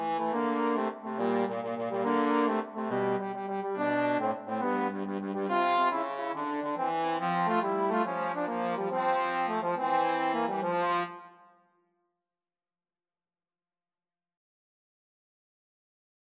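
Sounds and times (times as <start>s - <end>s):
trombone duet: 0.0s - 11.2s.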